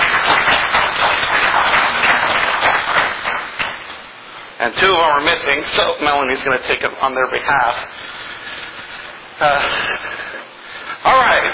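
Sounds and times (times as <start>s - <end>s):
round of applause: 0.0s - 3.9s
speech: 4.6s - 8.2s, 9.4s - 10.2s, 11.0s - 11.5s.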